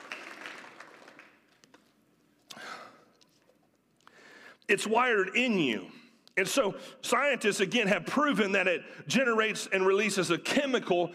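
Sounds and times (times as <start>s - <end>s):
small audience clapping: 0.0s - 1.8s
speech: 4.7s - 11.1s.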